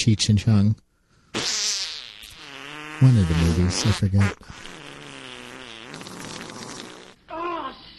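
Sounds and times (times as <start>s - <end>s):
speech: 0.0s - 0.8s, 3.0s - 4.8s
fart sound effect: 1.4s - 7.2s.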